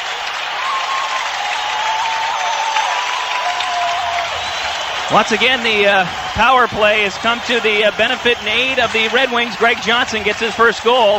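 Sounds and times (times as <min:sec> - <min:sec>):
hockey crowd roaring and cheering after a goal: 0:00.0 - 0:11.1
faint whistle-like tones: 0:04.3 - 0:06.6
speech: 0:05.1 - 0:11.1.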